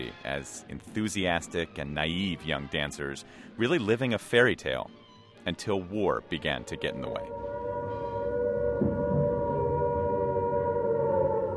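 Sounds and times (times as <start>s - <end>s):
speech: 0.0s - 7.6s
air raid siren wailing: 7.0s - 11.5s.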